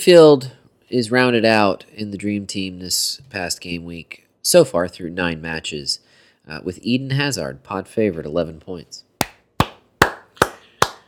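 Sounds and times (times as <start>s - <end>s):
speech: 0.0s - 9.1s
hand claps: 9.2s - 11.0s.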